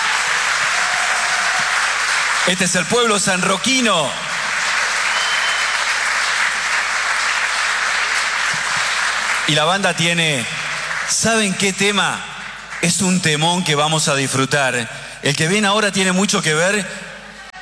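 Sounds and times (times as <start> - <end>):
audience applause: 0.0 - 14.0
speech: 2.4 - 4.2, 9.5 - 17.0.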